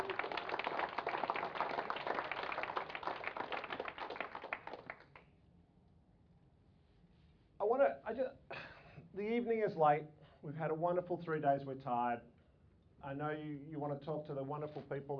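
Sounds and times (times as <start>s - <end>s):
audience applause: 0.0s - 5.2s
speech: 7.7s - 8.6s, 9.2s - 12.3s, 13.0s - 15.1s.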